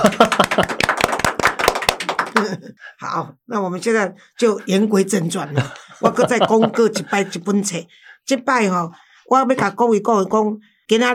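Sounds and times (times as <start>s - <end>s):
laughter: 0.0s - 0.9s, 5.4s - 7.5s
speech: 0.0s - 0.9s, 2.8s - 11.1s
person clapping: 0.0s - 2.6s.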